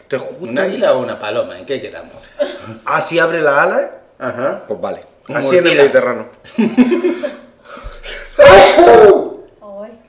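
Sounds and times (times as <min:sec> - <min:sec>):
speech: 0:00.1 - 0:07.4, 0:08.0 - 0:09.3
sneeze: 0:08.3 - 0:09.4.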